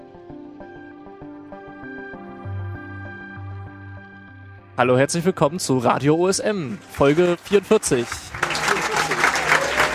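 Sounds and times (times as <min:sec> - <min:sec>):
speech: 0:04.8 - 0:08.4
crowd applause at a congress: 0:06.7 - 0:09.9.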